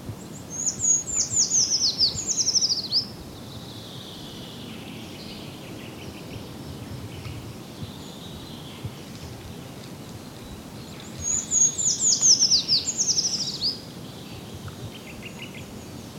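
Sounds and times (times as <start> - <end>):
Eurasian treecreeper Certhia familiaris calling: 0.2 - 16.1.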